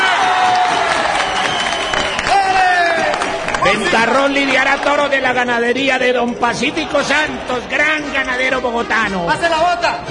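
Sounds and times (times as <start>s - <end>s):
standing crowd applauding at bullring: 0.0s - 5.6s
speech: 3.7s - 10.0s.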